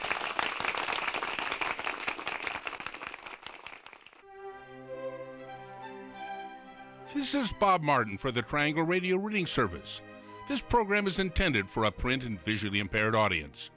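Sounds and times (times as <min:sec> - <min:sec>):
loud round of applause: 0:00.0 - 0:04.2
sustained music: 0:04.2 - 0:13.7
speech: 0:07.1 - 0:13.7.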